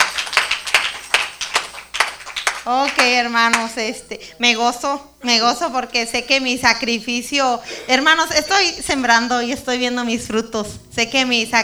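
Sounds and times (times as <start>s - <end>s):
audience applause: 0.0s - 3.7s
speech: 2.6s - 11.6s.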